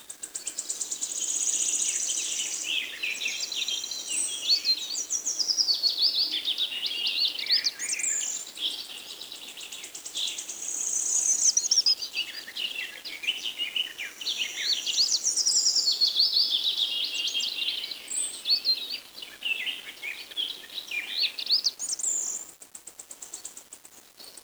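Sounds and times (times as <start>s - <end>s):
forest ambience: 0.0s - 22.4s.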